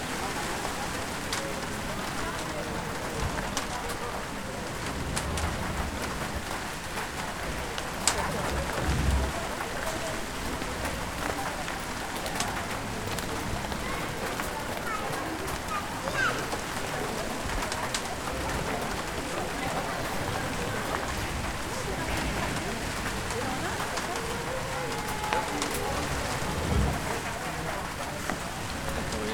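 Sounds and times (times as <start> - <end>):
rain patter on metal platform at a train station: 0.0 - 29.2.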